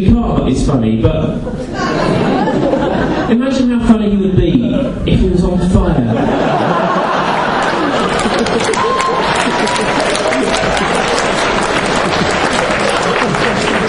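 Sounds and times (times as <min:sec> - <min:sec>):
speech: 0:00.0 - 0:02.7, 0:03.3 - 0:06.7
laughter: 0:01.4 - 0:03.5, 0:05.9 - 0:13.8
audience applause: 0:06.5 - 0:13.8.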